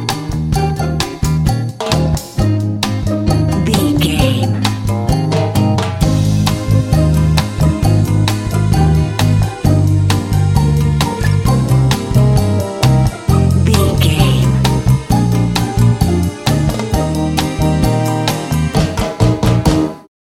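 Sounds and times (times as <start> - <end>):
quirky comedy cha cha music: 0.0 - 20.0.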